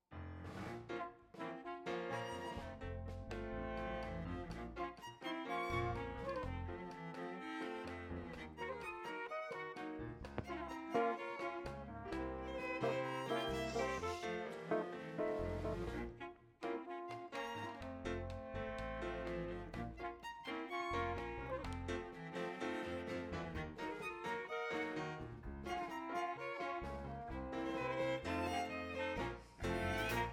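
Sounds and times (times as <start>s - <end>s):
tango music: 0.1s - 30.3s.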